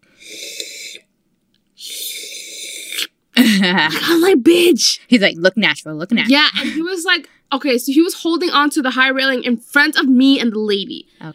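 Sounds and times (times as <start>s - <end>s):
voice imitating slurping from a cup: 0.0s - 1.1s, 1.8s - 3.2s
speech: 3.6s - 11.3s.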